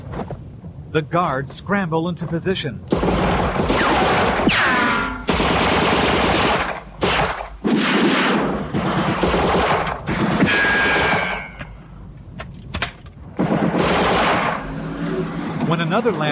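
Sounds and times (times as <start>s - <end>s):
speech: 0.2s - 4.7s, 15.9s - 16.3s
heavy machine gun fire: 2.9s - 11.6s, 13.3s - 14.9s.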